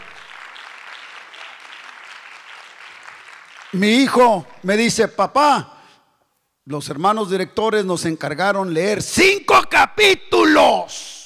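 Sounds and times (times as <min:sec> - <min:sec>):
audience applauding: 0:00.0 - 0:04.2
speech: 0:03.7 - 0:05.7, 0:06.7 - 0:11.2.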